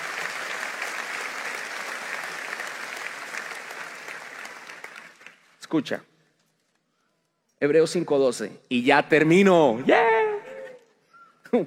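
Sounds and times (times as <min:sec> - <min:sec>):
audience applauding: 0:00.0 - 0:05.6
speech: 0:05.7 - 0:06.1, 0:07.6 - 0:10.1.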